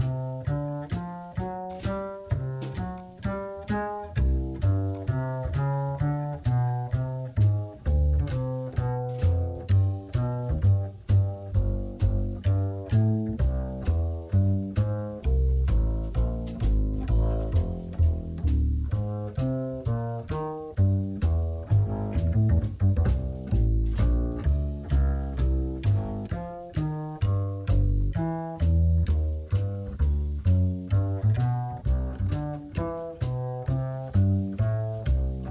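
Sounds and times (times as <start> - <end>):
jazz backing track: 0.0 - 35.4.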